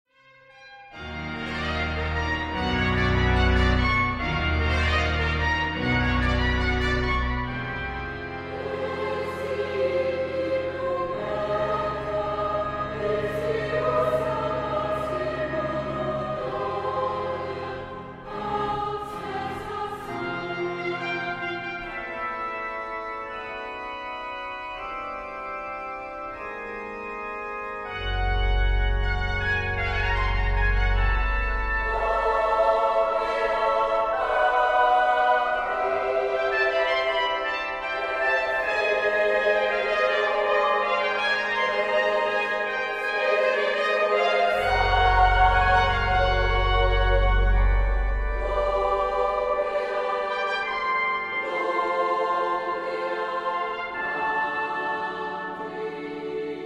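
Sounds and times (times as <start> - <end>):
sacred songs: 0.9 - 56.6.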